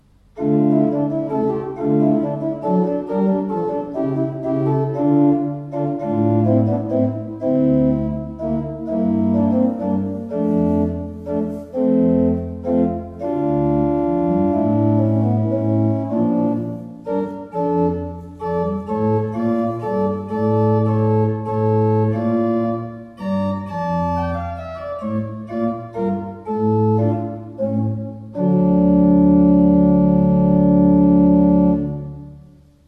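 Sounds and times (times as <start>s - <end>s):
Walcker pipe organ: 0.0s - 32.7s.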